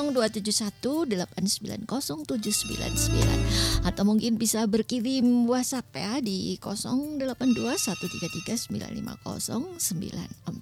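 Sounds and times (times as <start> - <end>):
speech: 0.0 - 10.6
telephone ringing with an incoming call to a radio station: 2.4 - 4.1, 7.4 - 9.9.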